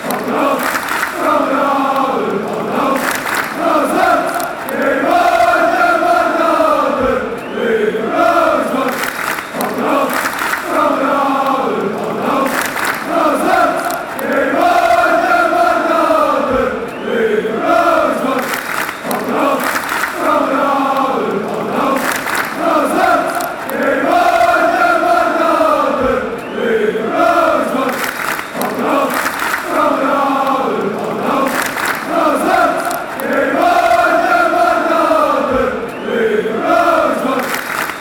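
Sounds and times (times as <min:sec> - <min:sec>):
chanting: 0:00.0 - 0:37.9.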